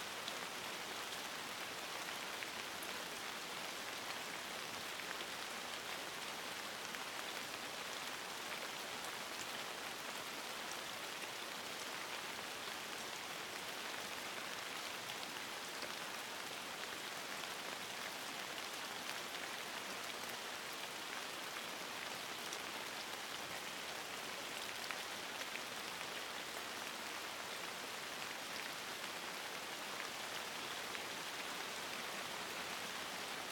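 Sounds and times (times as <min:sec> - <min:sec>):
light rain: 0:00.0 - 0:33.5.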